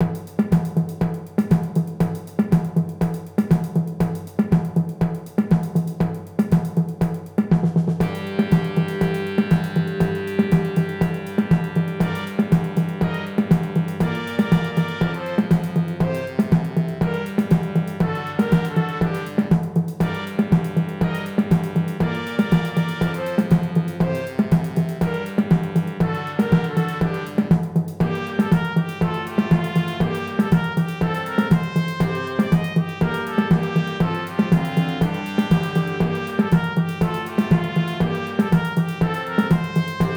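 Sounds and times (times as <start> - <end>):
samba percussion: 0.0 - 40.1.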